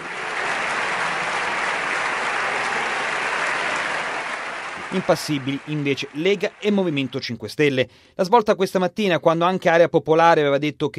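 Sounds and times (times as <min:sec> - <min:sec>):
applause in the Montecitorio parliament chamber: 0:00.0 - 0:07.5
speech: 0:04.9 - 0:10.9.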